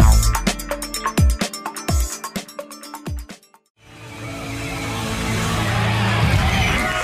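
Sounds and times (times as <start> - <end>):
music track with punchy rhythmic percussion: 0.0 - 3.7
fake applause dubbed onto a music record: 4.5 - 7.0.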